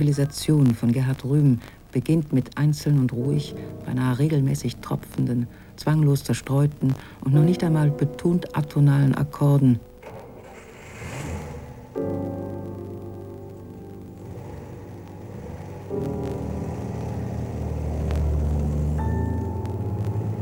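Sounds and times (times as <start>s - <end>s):
speech: 0.0s - 9.9s
car engine starting: 10.0s - 20.3s
traffic flowing: 10.0s - 20.3s.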